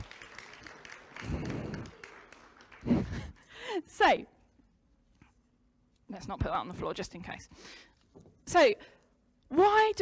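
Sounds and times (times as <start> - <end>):
audience clapping: 0.0 - 3.6
speech: 3.8 - 4.4, 6.1 - 9.9.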